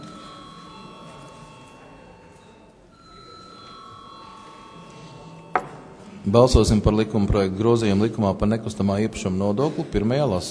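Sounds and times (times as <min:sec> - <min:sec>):
parliament chamber bell calling to vote: 0:00.0 - 0:06.0
low murmur of the parliament chamber: 0:00.0 - 0:10.4
speech: 0:06.2 - 0:10.4.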